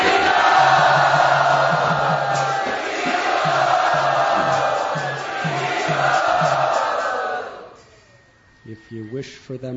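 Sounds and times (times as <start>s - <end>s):
audience applause welcoming guests at a gathering: 0.0s - 7.6s
speech: 9.2s - 9.7s.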